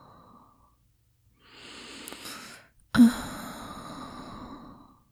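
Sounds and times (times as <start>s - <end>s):
slow breathing: 1.4s - 4.9s.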